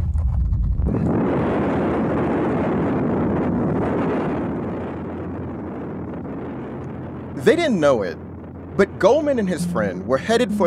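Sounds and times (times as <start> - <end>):
police helicopter making tight turns: 0.9 - 9.3
speech: 7.4 - 8.2, 8.8 - 10.6.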